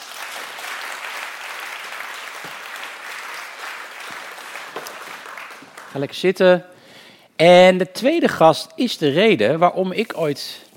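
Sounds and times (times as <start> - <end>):
audience applause for arriving guest: 0.0 - 6.1
speech: 5.9 - 6.7, 7.4 - 10.7.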